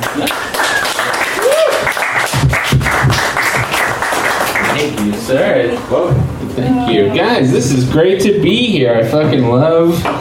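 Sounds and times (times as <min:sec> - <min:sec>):
audience applause at a live comedy show: 0:00.0 - 0:05.3
speech: 0:06.0 - 0:10.1.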